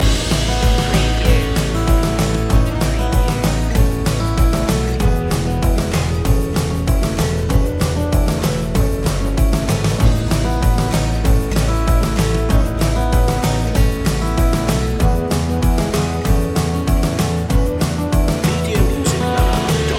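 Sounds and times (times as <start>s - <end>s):
midnight shuffle loop: 0.0s - 19.9s.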